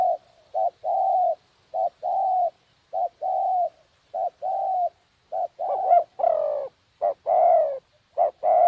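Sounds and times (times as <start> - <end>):
spotted dove cooing: 0.0 - 8.6.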